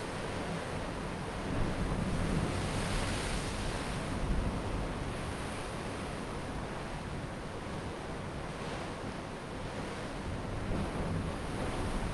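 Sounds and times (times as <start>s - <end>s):
ocean waves at night in Kauai: 0.0s - 12.1s.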